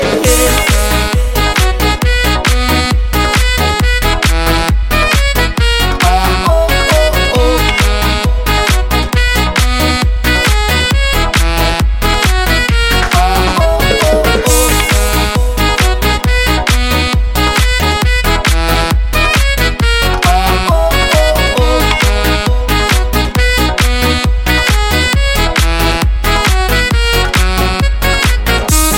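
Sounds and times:
saxophone: 0.0s - 28.9s.

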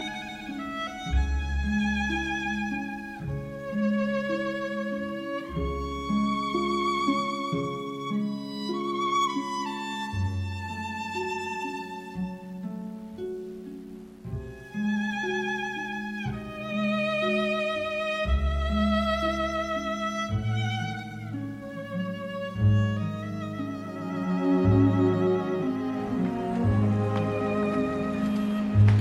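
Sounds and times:
violin: 0.0s - 29.0s.

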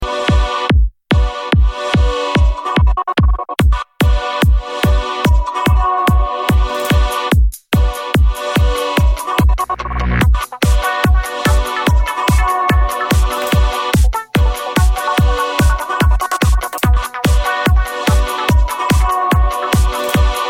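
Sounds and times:
crazy beats: 0.1s - 20.4s.

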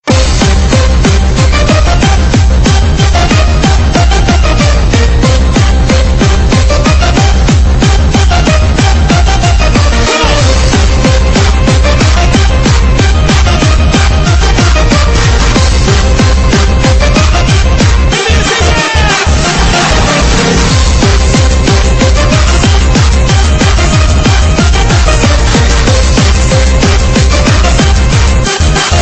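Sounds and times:
techno music: 0.0s - 29.0s.

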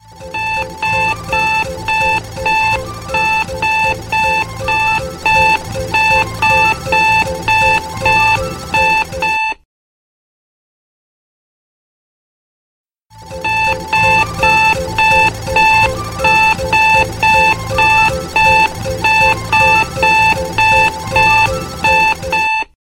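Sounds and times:
snooze alarm: 0.0s - 9.6s, 13.1s - 22.8s.

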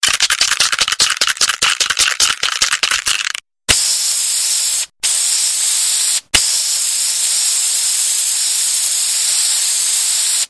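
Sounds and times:
graffiti spray can spraying: 0.0s - 10.4s.

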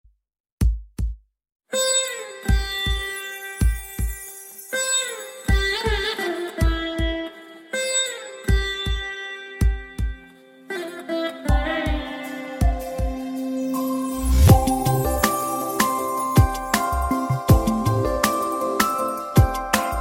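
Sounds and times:
music: 1.8s - 19.9s.

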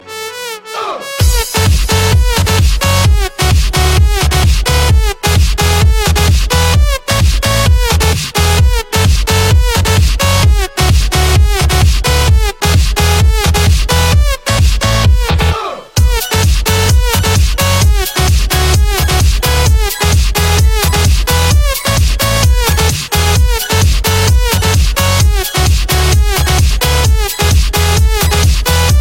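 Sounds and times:
dirty electro music: 0.0s - 29.0s.

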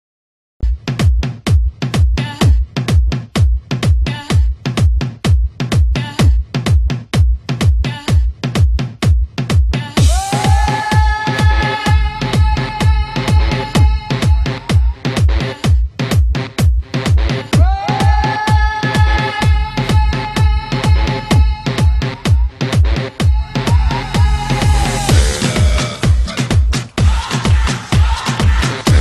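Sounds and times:
disco DJ music: 0.6s - 29.0s.

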